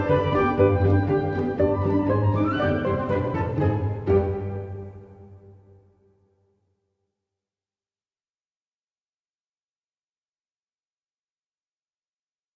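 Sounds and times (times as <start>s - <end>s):
quirky cinematic music: 0.0s - 6.1s.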